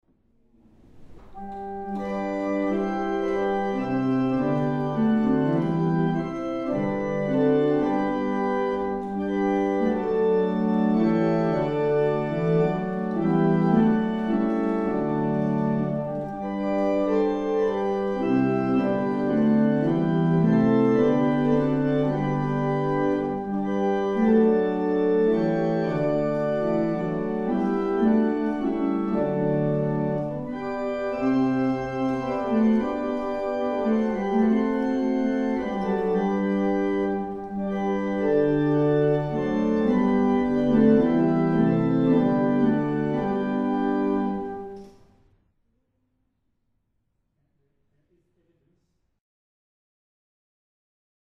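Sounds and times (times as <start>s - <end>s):
barrel organ: 1.2s - 44.8s.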